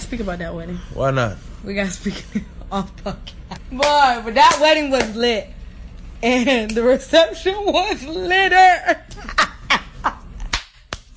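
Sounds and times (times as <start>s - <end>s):
speech: 0.1s - 5.6s, 6.2s - 9.4s
hand clapping: 3.8s - 5.2s, 10.4s - 11.1s.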